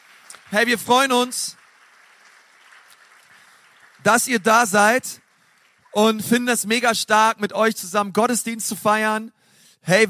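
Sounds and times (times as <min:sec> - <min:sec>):
crowd clapping: 0:00.0 - 0:07.2
speech: 0:00.5 - 0:01.6, 0:04.0 - 0:05.2, 0:06.0 - 0:10.0.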